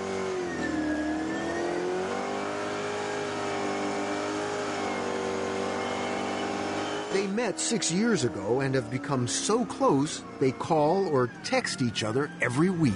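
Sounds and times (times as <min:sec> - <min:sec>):
race car engine revving during a ride outside Charlotte: 0:00.0 - 0:12.9
speech: 0:07.1 - 0:12.9.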